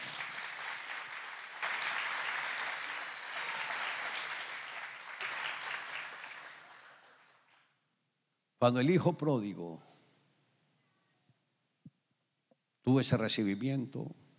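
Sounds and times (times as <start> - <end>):
audience applause: 0.0 - 7.6
speech: 8.6 - 9.9, 12.9 - 14.2.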